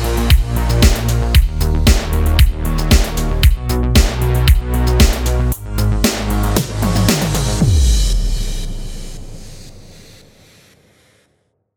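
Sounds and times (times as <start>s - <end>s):
retro music bed in D sharp minor: 0.0s - 8.2s.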